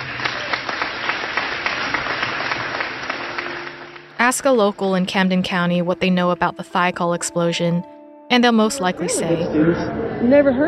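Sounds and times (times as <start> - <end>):
crowd applauding for a choir: 0.0 - 5.0
speech: 4.2 - 10.6.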